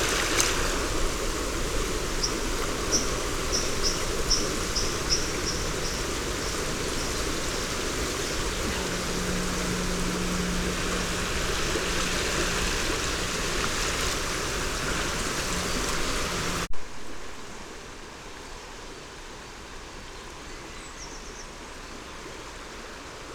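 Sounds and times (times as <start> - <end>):
grey wagtail: 0.0 - 16.7
river: 0.0 - 23.3.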